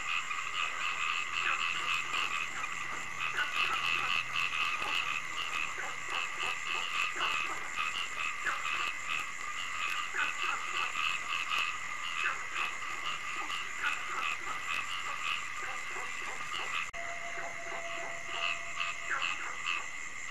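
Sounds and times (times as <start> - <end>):
frog chorus croaking: 0.0 - 20.2
shrill droning hum: 17.0 - 19.4.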